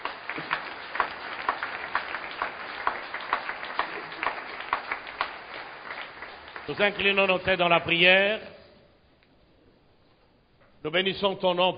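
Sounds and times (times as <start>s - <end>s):
congregation applauding the word of God: 0.0s - 8.0s
speech: 6.7s - 8.5s, 10.8s - 11.7s.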